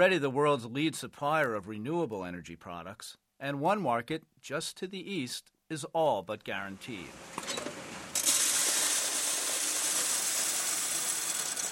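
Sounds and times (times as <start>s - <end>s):
speech: 0.0s - 7.4s
coin mint machine dropping new euro coins into a sorter in Berlin: 7.4s - 11.6s.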